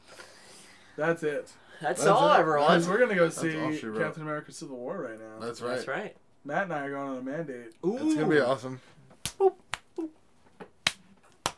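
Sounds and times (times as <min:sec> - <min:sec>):
speech: 0:01.0 - 0:10.2
people slapping each other in the face: 0:09.1 - 0:09.9, 0:10.6 - 0:11.5.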